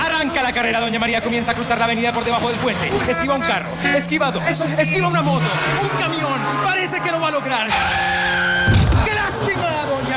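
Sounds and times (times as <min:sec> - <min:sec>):
speech: 0:00.5 - 0:09.7
minibus tyres screeching: 0:01.9 - 0:09.5
minibus horn blast: 0:02.8 - 0:09.6
heavy thud of minibus hitting a pedestrian: 0:08.7 - 0:09.2.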